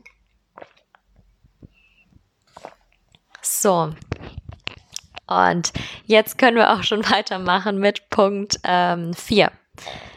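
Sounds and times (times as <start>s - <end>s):
person drinking a beverage: 0.0s - 5.9s
speech: 3.6s - 4.1s, 5.3s - 10.0s.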